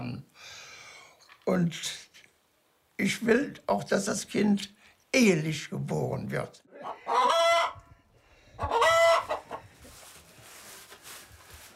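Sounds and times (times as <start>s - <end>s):
speech: 1.5s - 2.0s, 3.0s - 7.1s
hen squawking: 6.7s - 7.8s, 8.6s - 9.6s
chickens clucking: 6.7s - 7.9s, 8.6s - 10.0s
rooster crowing: 6.8s - 7.8s, 8.6s - 9.5s
rustling: 9.4s - 11.7s.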